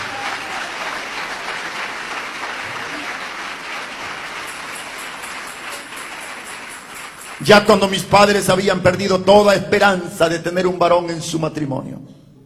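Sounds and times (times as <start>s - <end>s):
audience applause: 0.0s - 8.0s
speech: 7.4s - 12.2s.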